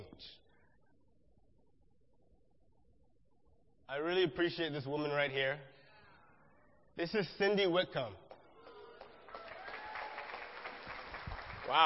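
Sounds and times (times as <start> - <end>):
speech: 3.9 - 5.7, 7.0 - 8.2, 11.7 - 11.8
audience clapping: 8.3 - 11.8.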